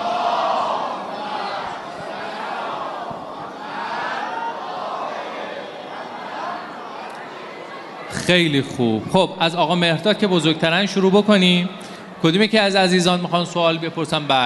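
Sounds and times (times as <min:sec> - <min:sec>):
audience reciting a loud salawat together in unison: 0:00.0 - 0:08.1
speech: 0:08.2 - 0:14.4.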